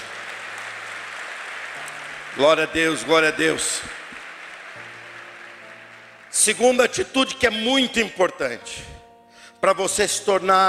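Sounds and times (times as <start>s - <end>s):
audience applause: 0.0s - 6.9s
speech: 1.8s - 4.0s, 6.4s - 8.9s, 9.6s - 10.6s.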